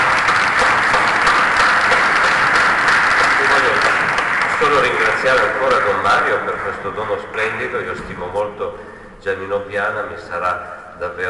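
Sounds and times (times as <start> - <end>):
crowd applause: 0.0 - 8.0
speech: 4.6 - 11.2.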